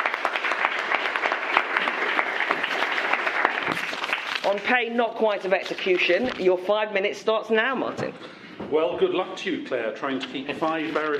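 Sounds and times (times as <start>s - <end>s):
audience applause welcoming a speaker to a debate: 0.0s - 4.5s
speech: 4.5s - 11.1s.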